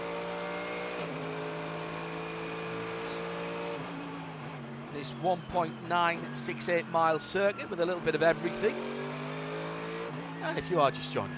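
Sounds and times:
sports car engine at full throttle during qualifying on the Long Beach street circuit: 0.0 - 4.9, 7.8 - 10.7
speech: 5.0 - 9.0, 10.4 - 11.3.

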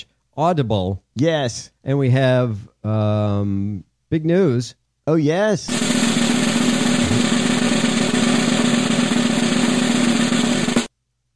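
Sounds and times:
speech: 0.0 - 6.0
drum roll: 5.7 - 10.9.

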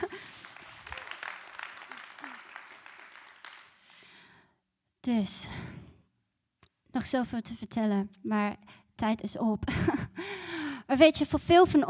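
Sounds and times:
audience applauding: 0.0 - 4.0
speech: 5.0 - 5.7, 7.0 - 11.8.

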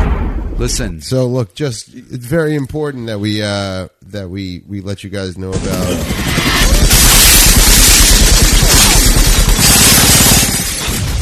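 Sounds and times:
speech: 0.6 - 6.5
debris crashing and shattering: 5.6 - 11.2
heavy chain gun fire from an action scene in The Matrix: 5.8 - 11.2.

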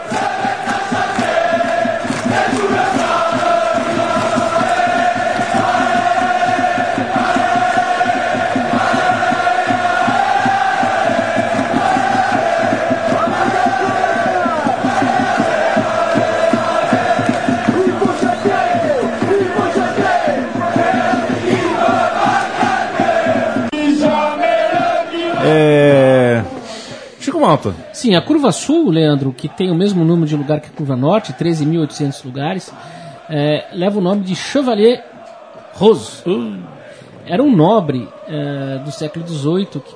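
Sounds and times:
football supporters singing: 0.0 - 28.8, 29.5 - 39.9
speech: 27.6 - 35.1, 35.8 - 39.9.

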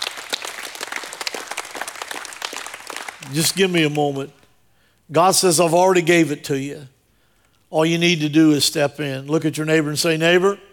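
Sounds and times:
audience applause: 0.0 - 3.5
speech: 3.3 - 4.4, 5.1 - 7.0, 7.7 - 10.7.

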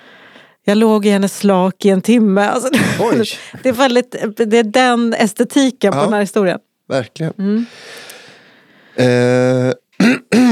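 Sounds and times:
faint hiss: 0.0 - 10.4
speech: 0.7 - 8.0, 9.0 - 10.5
someone clearing their throat: 9.0 - 10.5.

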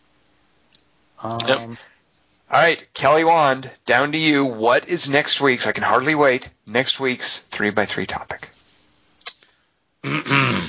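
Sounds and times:
speech: 1.2 - 8.6, 10.0 - 10.6
man clearing his throat: 10.0 - 10.6.

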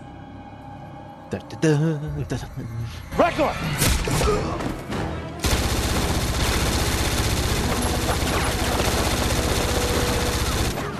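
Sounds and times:
speech: 1.3 - 5.2
automatic gunfire with blank rounds: 5.4 - 10.8.

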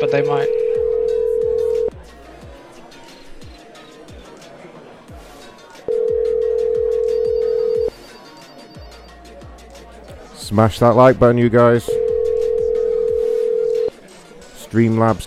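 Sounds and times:
speech: 0.0 - 0.6, 10.5 - 12.0, 14.7 - 15.2
outgoing phone call ringback tones: 0.0 - 1.9, 5.9 - 9.2, 11.8 - 13.9.

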